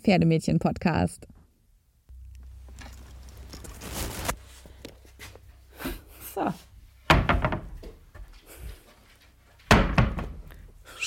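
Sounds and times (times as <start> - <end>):
speech: 0.0 - 1.4, 6.4 - 6.7
shuffling: 2.4 - 6.8, 7.8 - 9.7
studio door slamming shut: 7.1 - 7.8, 9.7 - 10.4.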